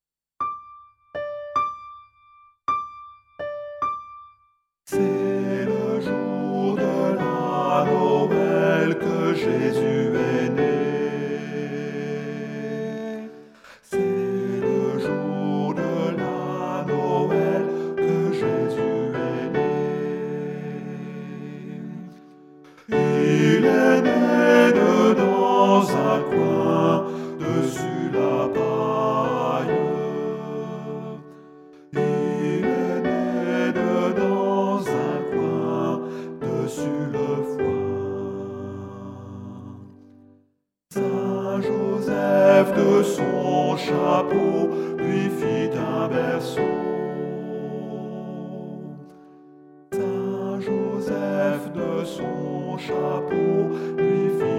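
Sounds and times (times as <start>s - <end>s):
tenor singing Christmas carol: 4.9s - 40.1s, 40.9s - 49.3s, 49.9s - 54.5s.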